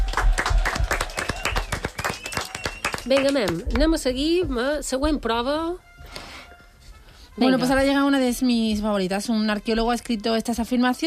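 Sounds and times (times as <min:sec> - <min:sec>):
lively applause from a small group: 0:00.0 - 0:04.0
speech: 0:03.1 - 0:05.9, 0:07.4 - 0:11.0.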